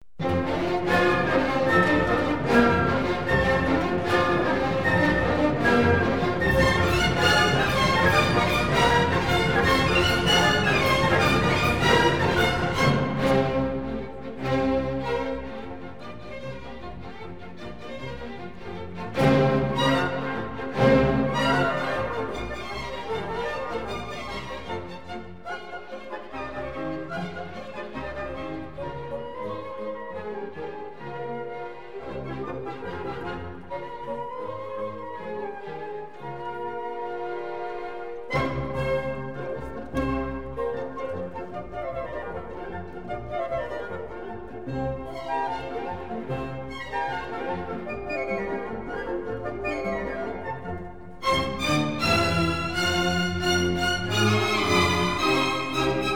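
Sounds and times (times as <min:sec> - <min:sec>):
orchestra playing presto in F: 0:00.2 - 0:56.1.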